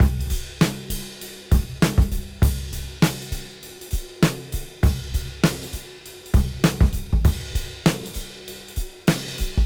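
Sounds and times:
cymbal beat at 99 BPM: 0.0s - 9.6s.

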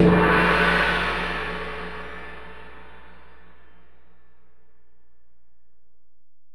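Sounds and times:
Alesis DM-PRO drum machine ride cymbal: 0.0s - 3.0s.

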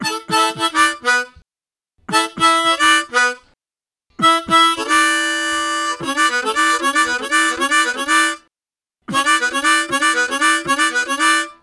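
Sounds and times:
octave harmonica riffs: 0.0s - 1.3s, 2.1s - 3.4s, 4.2s - 8.4s, 9.1s - 11.6s.

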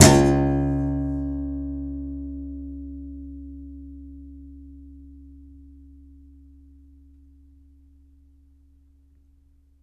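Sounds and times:
contrabass balalaika plucked: 0.0s - 2.0s.

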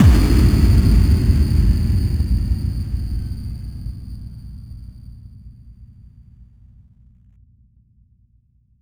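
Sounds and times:
effect kick drum hits: 0.0s - 3.8s.

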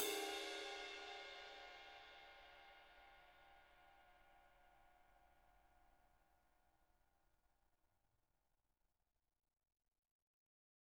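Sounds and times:
ride cymbals: 0.0s - 2.4s.

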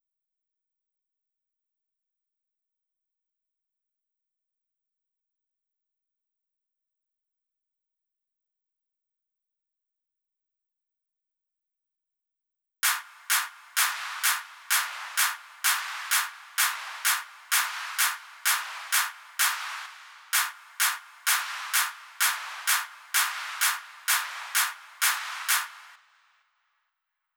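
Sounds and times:
claps: 12.8s - 26.0s
drum loop at 128 BPM: 12.8s - 26.0s.

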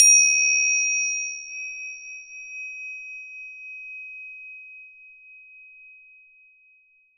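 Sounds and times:
tingsha chimes: 0.0s - 2.8s.

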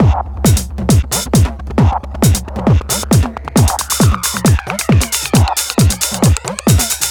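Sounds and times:
house music: 0.0s - 7.0s.

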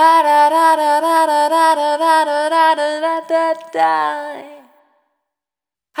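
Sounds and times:
single voice melodic loops: 0.0s - 4.7s.

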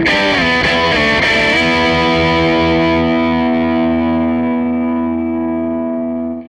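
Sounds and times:
Gretsch guitar loop: 0.0s - 6.4s.

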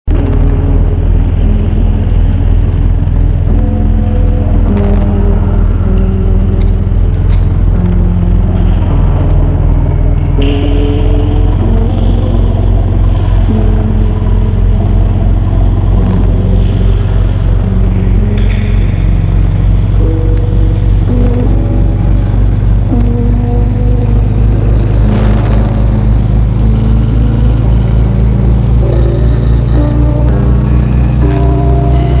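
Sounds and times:
horror atmosphere pad: 0.1s - 32.1s.

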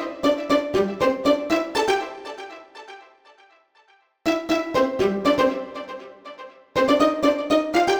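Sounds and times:
pizzicato strings: 0.0s - 2.6s, 4.3s - 7.9s.

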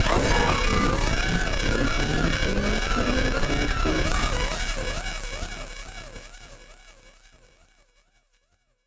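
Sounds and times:
battered synth: 0.0s - 4.4s.

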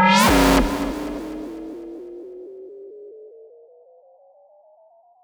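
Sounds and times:
delayed synth effect: 0.1s - 2.2s.

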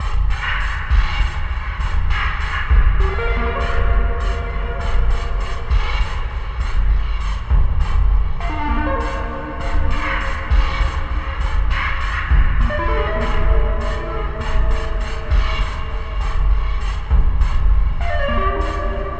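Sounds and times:
deep space distortion groove: 0.0s - 19.1s.

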